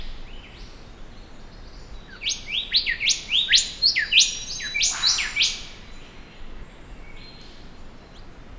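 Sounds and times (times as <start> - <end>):
Pachycephala pectoralis golden whistler calling: 2.2 - 6.0.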